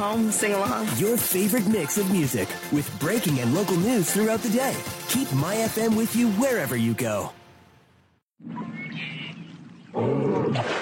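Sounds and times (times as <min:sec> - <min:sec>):
speech: 0:00.0 - 0:07.4
bear roaring: 0:09.9 - 0:10.8.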